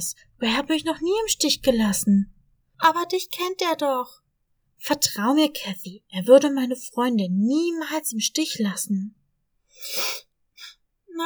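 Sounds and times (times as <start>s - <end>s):
speech: 0.0s - 4.2s, 4.8s - 9.2s, 9.8s - 10.3s
breathy sniffling: 9.8s - 10.7s.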